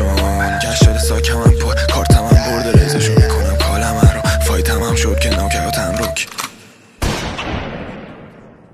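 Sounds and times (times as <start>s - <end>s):
outro music: 0.0s - 6.2s.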